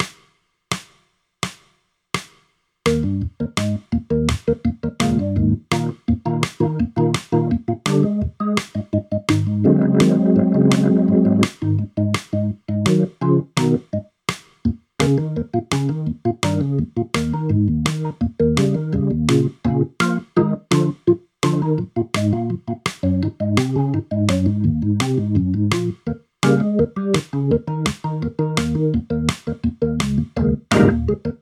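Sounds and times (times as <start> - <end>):
organ solo: 2.9 - 14.0, 15.0 - 31.4.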